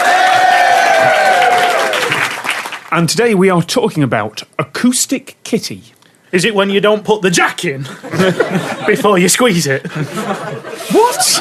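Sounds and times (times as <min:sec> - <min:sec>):
cheering whoops: 0:00.0 - 0:02.3
live studio audience applauding: 0:00.0 - 0:03.0
speech: 0:02.9 - 0:11.3
laughter: 0:07.8 - 0:11.3.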